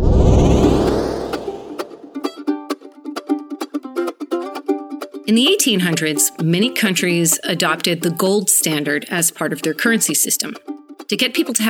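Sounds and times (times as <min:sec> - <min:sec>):
whooshing engine-like roar of a time machine: 0:00.0 - 0:02.2
speech: 0:05.3 - 0:11.6.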